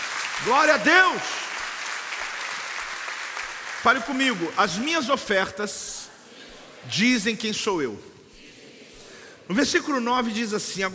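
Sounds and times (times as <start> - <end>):
crowd applauding in a large room: 0.0 - 5.3
speech: 0.4 - 1.4, 3.8 - 6.1, 6.8 - 8.1, 9.5 - 10.9.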